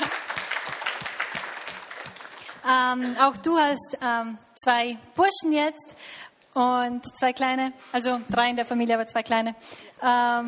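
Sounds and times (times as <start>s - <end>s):
audience applause: 0.0s - 2.7s
speech: 2.7s - 10.4s.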